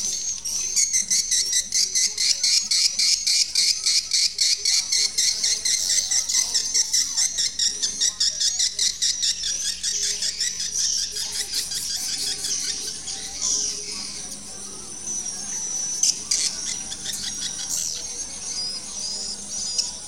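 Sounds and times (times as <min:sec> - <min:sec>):
swiftlet twittering calls: 0:00.0 - 0:20.0.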